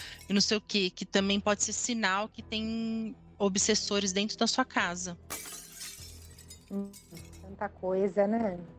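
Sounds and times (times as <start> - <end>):
speech: 0.3 - 5.4, 6.7 - 8.7
drinking glass breaking: 5.3 - 7.5.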